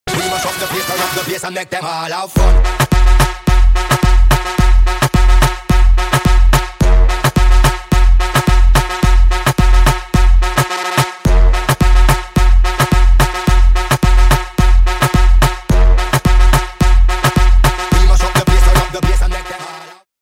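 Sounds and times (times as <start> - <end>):
beat drop: 2.4 - 19.8.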